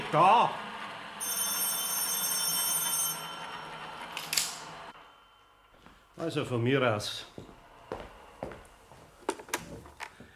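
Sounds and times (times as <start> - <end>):
speech: 0.1 - 1.4, 6.2 - 7.5
telephone bell ringing: 1.2 - 5.9.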